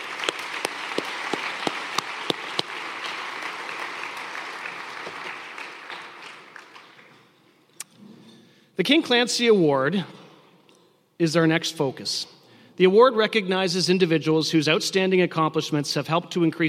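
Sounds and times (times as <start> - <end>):
audience applause at the 2023 Canadian Disability Hall of Fame induction ceremony: 0.0 - 7.3
speech: 8.8 - 10.2, 11.2 - 16.6.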